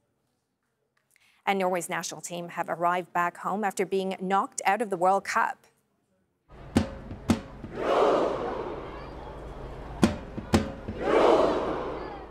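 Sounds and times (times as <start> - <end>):
speech: 1.5 - 5.7
roaring group shout of a huge crowd: 7.5 - 12.2.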